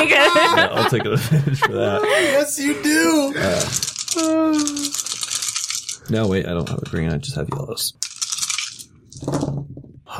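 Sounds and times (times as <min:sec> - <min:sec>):
laughter: 0:00.0 - 0:03.6
speech: 0:00.0 - 0:04.9, 0:06.1 - 0:08.0, 0:09.2 - 0:10.1
dice being rolled: 0:03.4 - 0:06.4, 0:08.0 - 0:09.6.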